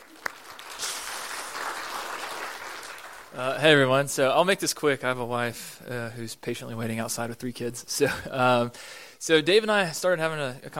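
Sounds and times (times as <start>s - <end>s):
audience applause welcoming a speaker at a service: 0.0s - 3.5s
speech: 3.3s - 10.7s.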